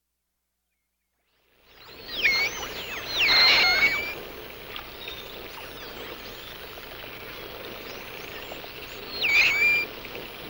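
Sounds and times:
humpback whale song: 1.9s - 4.8s, 9.0s - 10.3s.

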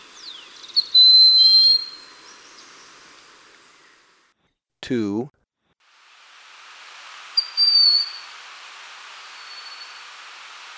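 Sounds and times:
soft background hiss: 0.0s - 4.4s, 5.8s - 10.7s
Broad-winged Hawk whistle: 0.8s - 2.1s, 7.4s - 8.3s, 9.3s - 10.1s.

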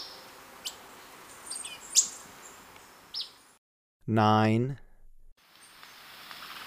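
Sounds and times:
orange-bellied euphonia song of chips, whistles and buzzy phrases: 4.1s - 5.3s
speech: 4.2s - 4.8s.

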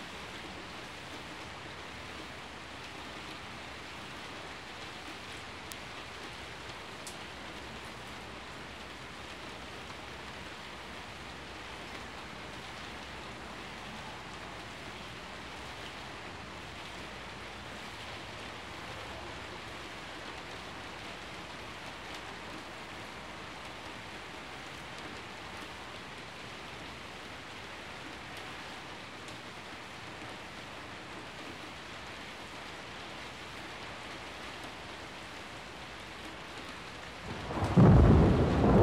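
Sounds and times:
heavy rain: 0.0s - 38.8s
rolling thunder: 37.2s - 38.8s.

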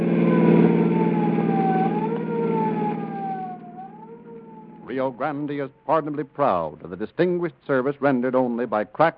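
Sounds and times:
heavy engine roaring: 0.0s - 4.9s
emergency vehicle siren wailing: 0.0s - 6.2s
speech: 5.0s - 9.1s.

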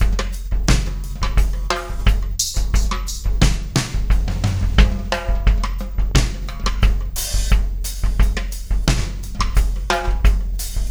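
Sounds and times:
drum: 0.0s - 10.9s.

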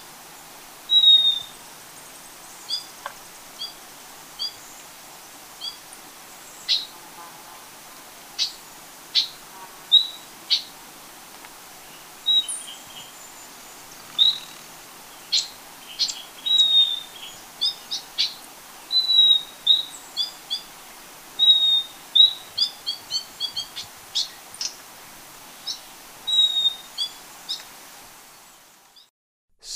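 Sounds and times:
yellow-collared chlorophonia calling: 0.9s - 1.5s, 14.0s - 14.7s, 15.3s - 20.7s, 21.4s - 24.7s, 25.6s - 27.6s.

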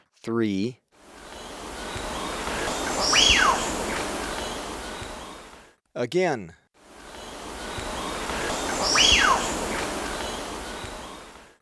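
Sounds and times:
wattled guan whistled calls in Ecuador: 1.2s - 5.6s, 7.0s - 11.6s.

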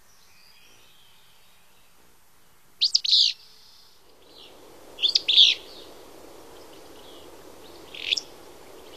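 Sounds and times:
Willow flycatcher song: 2.8s - 8.9s.

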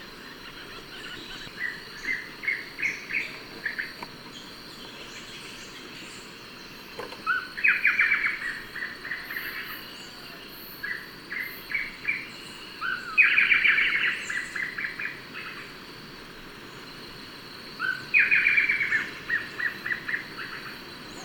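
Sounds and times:
Blackish Antbird in Ecuador: 0.0s - 15.8s, 16.6s - 21.2s.

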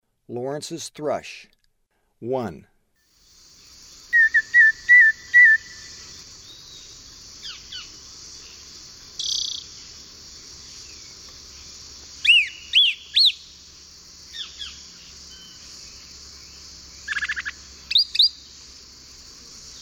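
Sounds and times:
Lawrence's thrush whistling and trilling: 4.1s - 6.0s, 12.2s - 13.4s, 17.1s - 18.4s.

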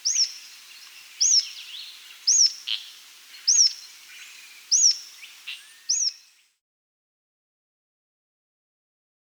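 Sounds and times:
Rough-Legged Tyrannulet Phyllomyias burmeisteri calling in the Andes: 0.0s - 6.5s.

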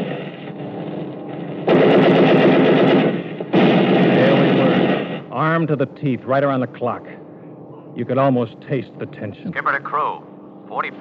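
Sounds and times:
lower rear gun turret firing: 0.0s - 5.8s
speech: 5.6s - 7.2s, 8.0s - 10.9s.

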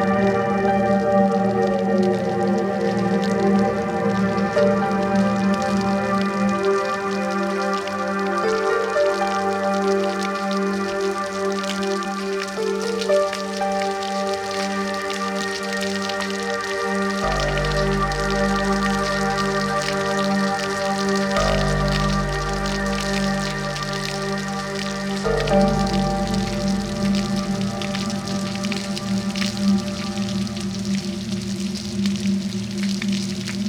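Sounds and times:
roaring thunderstorm: 0.0s - 33.6s.

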